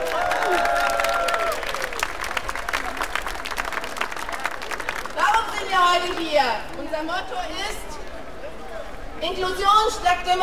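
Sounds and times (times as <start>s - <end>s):
crowd applause: 0.0s - 6.1s
speech: 5.8s - 7.9s, 9.2s - 10.4s.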